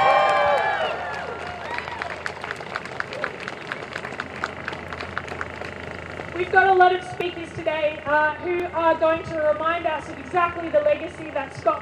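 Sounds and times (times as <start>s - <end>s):
crowd applause at a rally: 0.0s - 6.3s
speech: 6.4s - 11.7s.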